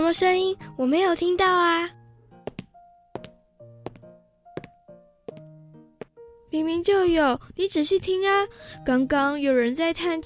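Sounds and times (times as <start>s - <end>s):
speech: 0.1s - 2.0s, 6.5s - 10.2s
slow heavy footsteps: 2.4s - 6.2s.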